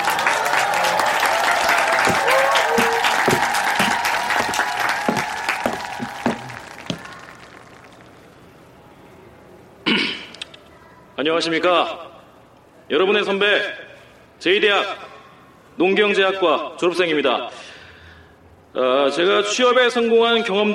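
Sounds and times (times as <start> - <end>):
audience applause: 0.0 - 8.2
throat clearing: 9.9 - 10.4
speech: 11.3 - 12.1, 12.9 - 15.0, 15.8 - 17.6, 18.8 - 20.7.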